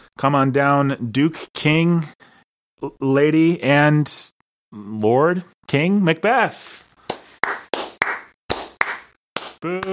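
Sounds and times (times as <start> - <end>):
speech: 0.2 - 6.8, 9.6 - 9.9
sharp hand claps: 7.0 - 9.9.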